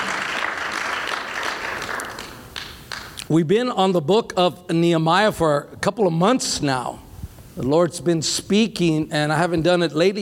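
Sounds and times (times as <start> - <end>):
audience clapping: 0.0 - 3.3
speech: 3.3 - 7.0, 7.6 - 10.1.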